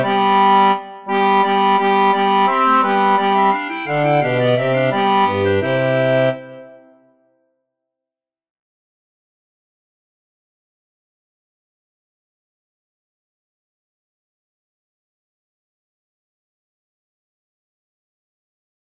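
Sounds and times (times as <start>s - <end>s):
bass choir voices: 1.2s - 6.4s.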